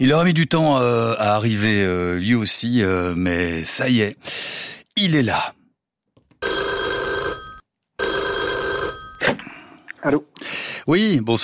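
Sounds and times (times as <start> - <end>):
speech: 0.0 - 5.6, 10.0 - 11.4
telephone ringing on a line to England: 6.4 - 9.5.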